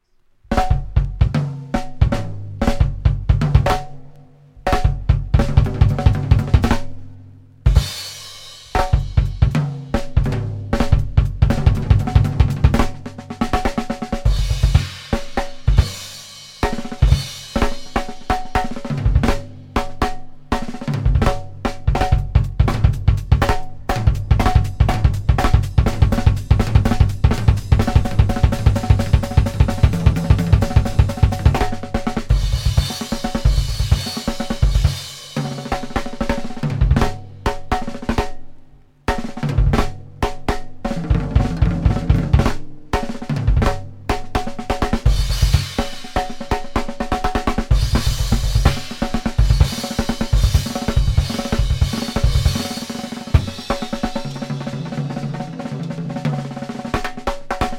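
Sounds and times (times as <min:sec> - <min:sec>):
drum solo: 0:00.4 - 0:57.7.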